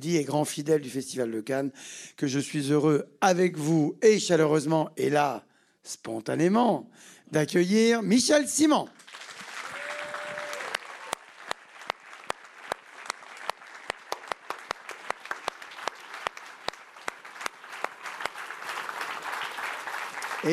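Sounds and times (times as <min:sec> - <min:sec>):
speech: 0:00.0 - 0:09.2
audience applause: 0:09.0 - 0:20.5.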